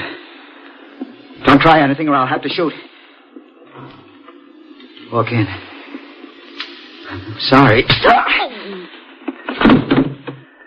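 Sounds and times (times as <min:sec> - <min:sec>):
speech: 0:01.6 - 0:02.9, 0:05.1 - 0:05.7, 0:07.2 - 0:08.5
door being opened with dull thunks and clunks: 0:09.5 - 0:10.5.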